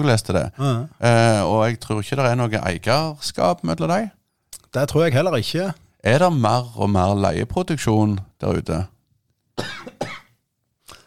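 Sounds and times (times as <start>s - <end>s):
speech: 0.0s - 8.9s, 9.6s - 9.8s
person coughing: 9.6s - 10.4s.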